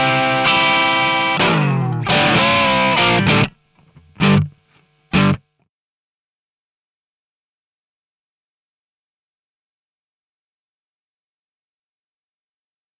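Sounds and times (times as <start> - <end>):
pentatonic blues solo rhythm part: 0.0 - 5.4.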